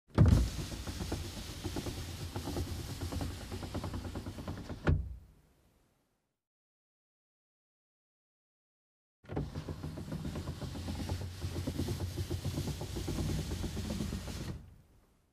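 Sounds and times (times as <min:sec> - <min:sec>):
car glass window lowered and raised manually: 0:00.1 - 0:05.2, 0:09.3 - 0:14.8.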